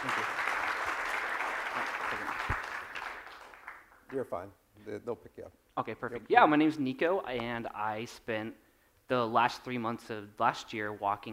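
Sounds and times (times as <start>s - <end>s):
audience applause welcoming a speaker at the Exponential event: 0.0s - 4.0s
speech: 4.1s - 11.3s.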